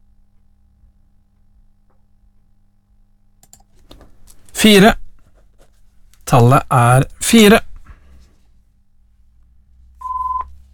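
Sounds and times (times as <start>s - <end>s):
speech: 4.6s - 5.0s, 6.3s - 7.7s
telephone ringing: 10.0s - 10.5s.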